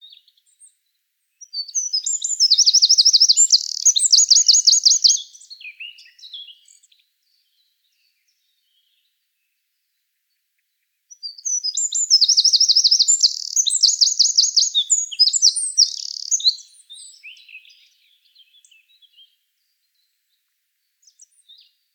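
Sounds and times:
Eurasian wren singing: 1.4 - 6.9, 11.2 - 19.2.

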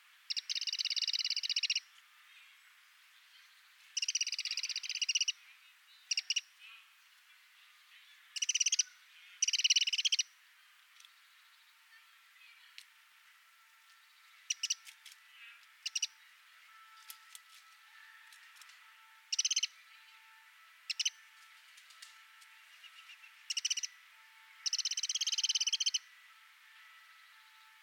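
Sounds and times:
faint chirps: 0.2 - 12.9, 13.8 - 17.1, 19.3 - 21.2, 22.7 - 26.1
Eurasian wren churring: 0.3 - 1.9, 4.0 - 5.4, 6.0 - 6.5, 8.3 - 10.3, 14.4 - 14.8, 15.8 - 16.5, 19.3 - 19.8, 20.9 - 21.2, 23.0 - 24.0, 24.6 - 26.1.

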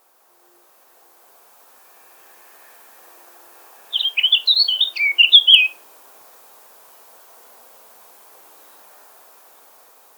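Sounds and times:
Eurasian blackcap singing: 4.0 - 5.8.

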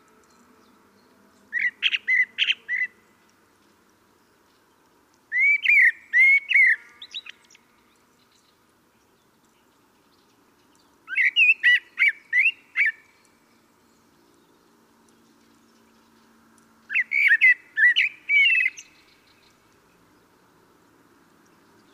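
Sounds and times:
common blackbird singing: 0.2 - 3.2, 5.3 - 16.2, 16.9 - 20.3.

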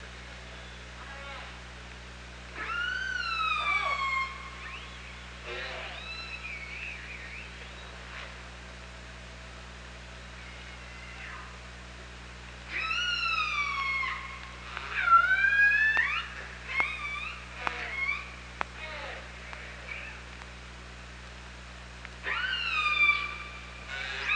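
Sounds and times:
steady hum: 0.0 - 24.3
killer whale calls: 2.6 - 7.5, 12.7 - 20.2, 22.2 - 24.3.

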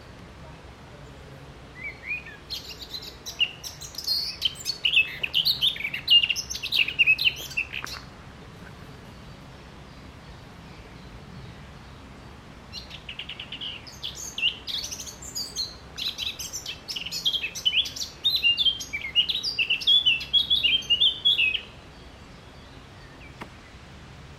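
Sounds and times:
Eurasian blackcap song: 1.8 - 8.1, 12.7 - 23.8.

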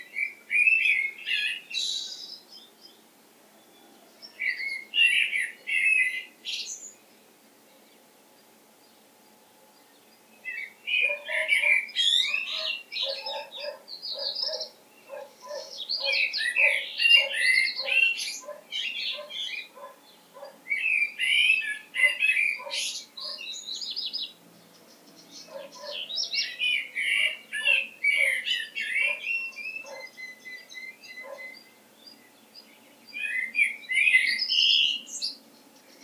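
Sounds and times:
Common blackbird Turdus merula chattering and warbling: 0.0 - 2.4, 4.3 - 7.0, 9.8 - 36.0.

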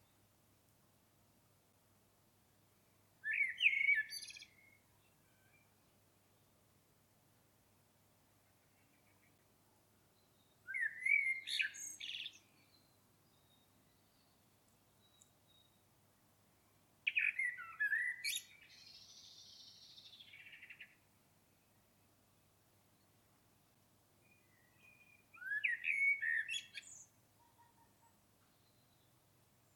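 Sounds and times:
common blackbird song: 3.2 - 6.6, 8.3 - 16.0, 16.6 - 23.2, 24.2 - 29.7.

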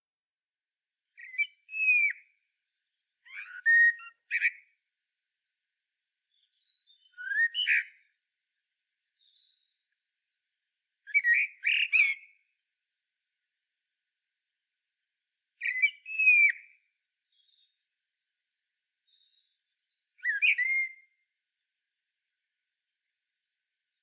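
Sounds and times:
common blackbird singing: 1.2 - 2.2, 3.2 - 4.6, 6.3 - 8.1, 9.2 - 9.8, 11.1 - 12.3, 15.6 - 18.3, 19.1 - 19.6, 20.2 - 21.0.

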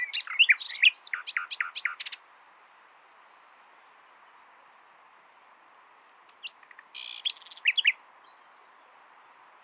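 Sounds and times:
common nightingale singing: 0.0 - 2.2, 6.3 - 9.0.

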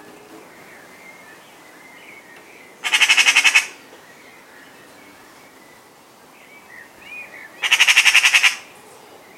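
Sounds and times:
Eurasian magpie Pica pica chattering rattles: 2.8 - 3.7, 7.6 - 8.6.

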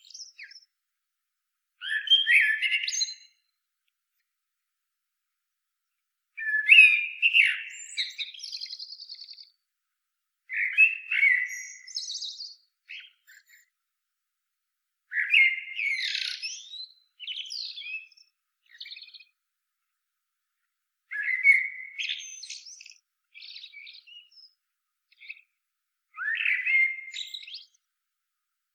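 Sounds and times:
Common blackbird singing: 0.0 - 0.7, 1.8 - 3.4, 6.4 - 9.6, 10.5 - 13.7, 15.1 - 19.4, 21.1 - 25.5, 26.2 - 27.8.

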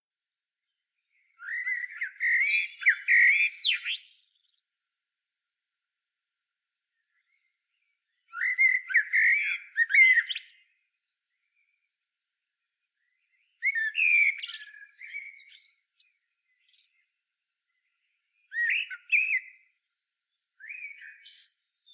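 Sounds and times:
common blackbird Turdus merula singing: 1.1 - 4.6, 8.1 - 10.7, 13.0 - 17.1, 17.8 - 19.7, 20.6 - 21.9.

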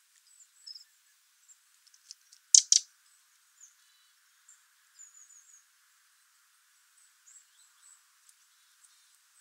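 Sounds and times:
soft high chirps from other small birds: 0.2 - 9.4
Eurasian wren calling with a hard double tick: 2.4 - 2.9.

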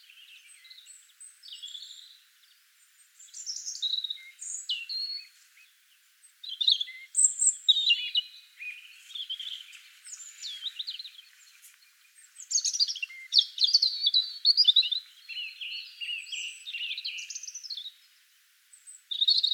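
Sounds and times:
European robin Erithacus rubecula singing: 0.0 - 19.5.

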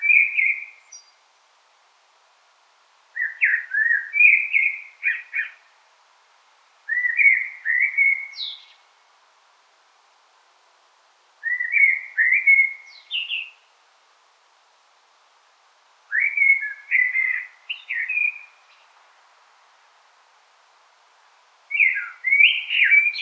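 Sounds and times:
Common blackbird song: 0.0 - 1.2, 3.2 - 5.7, 6.9 - 8.9, 11.4 - 13.7, 16.1 - 19.0, 21.7 - 23.2.

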